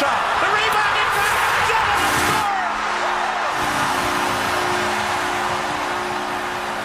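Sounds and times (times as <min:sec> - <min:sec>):
cheering hockey arena crowd: 0:00.0 - 0:06.8
deep hockey arena goal horn blaring: 0:01.8 - 0:06.8.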